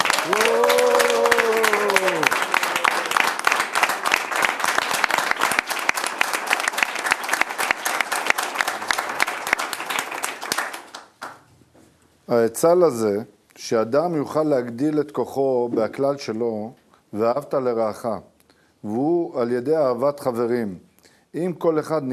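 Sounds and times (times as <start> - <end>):
large crowd applause: 0.0 - 11.4
speech: 12.4 - 22.1.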